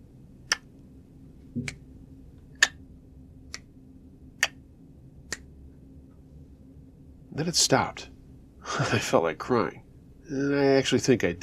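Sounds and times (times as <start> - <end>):
speech: 1.6 - 1.8, 7.4 - 8.1, 8.7 - 11.4
clicking sound like tongue clicks: 2.6 - 2.8, 4.4 - 4.6.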